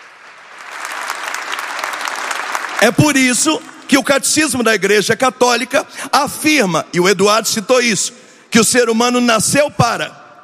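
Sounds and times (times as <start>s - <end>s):
crowd applauding: 0.0s - 4.6s
speech: 2.8s - 10.2s.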